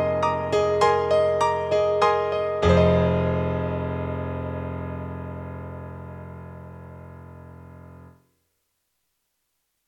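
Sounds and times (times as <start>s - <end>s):
bright piano with resonance on a sound module: 0.0s - 8.4s.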